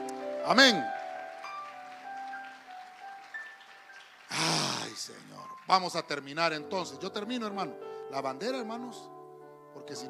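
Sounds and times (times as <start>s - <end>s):
audience applause: 0.0s - 6.3s
speech: 0.5s - 0.9s, 5.7s - 9.2s, 9.8s - 10.0s.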